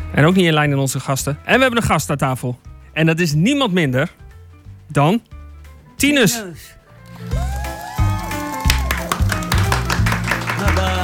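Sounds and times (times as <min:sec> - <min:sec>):
speech: 0:00.1 - 0:04.2, 0:04.9 - 0:05.3, 0:06.0 - 0:07.5
small group clapping live in a studio: 0:07.0 - 0:11.0.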